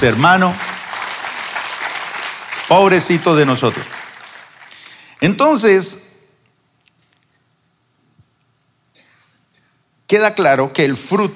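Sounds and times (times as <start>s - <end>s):
speech: 0.0s - 0.6s, 2.7s - 4.0s, 5.2s - 6.0s, 10.1s - 11.3s
audience applause: 0.0s - 5.1s.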